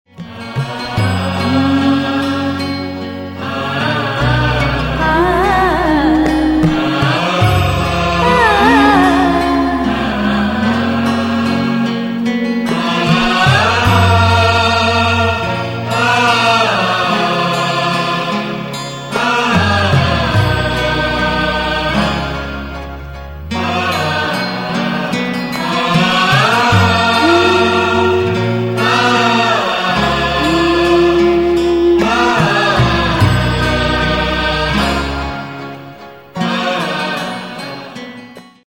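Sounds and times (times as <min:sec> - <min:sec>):
blissful music: 0:00.2 - 0:38.2.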